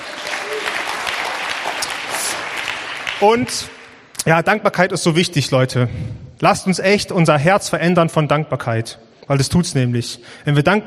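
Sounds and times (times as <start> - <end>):
audience applause: 0.0 - 4.0
speech: 3.2 - 10.8.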